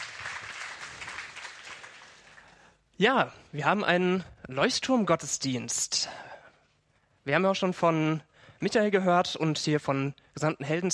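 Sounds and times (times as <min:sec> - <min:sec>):
audience applause: 0:00.0 - 0:02.5
speech: 0:03.0 - 0:06.3, 0:07.2 - 0:10.9.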